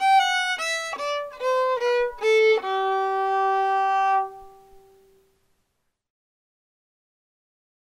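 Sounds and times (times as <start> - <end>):
fiddle: 0.0 - 5.2.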